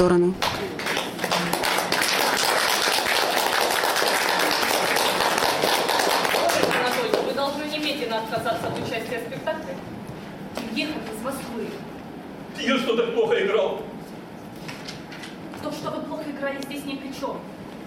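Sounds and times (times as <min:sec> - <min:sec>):
speech: 0:00.0 - 0:00.5, 0:08.2 - 0:10.0, 0:10.8 - 0:11.9, 0:12.6 - 0:13.9, 0:15.6 - 0:17.6
crowd clapping: 0:00.4 - 0:08.0.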